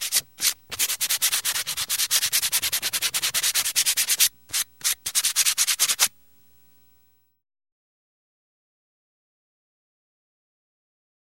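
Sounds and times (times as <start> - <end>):
person sanding wood: 0.0 - 6.1.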